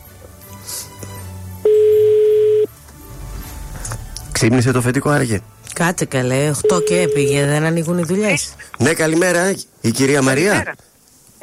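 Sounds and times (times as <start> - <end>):
telephone line ringing tone: 1.6 - 2.8, 6.6 - 7.6
speech: 4.4 - 11.4.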